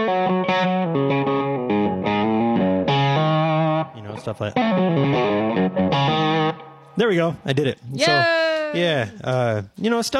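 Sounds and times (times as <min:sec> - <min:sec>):
heavily processed guitar playing buzzy distorted quacking notes: 0:00.0 - 0:06.8
speech: 0:04.2 - 0:10.1.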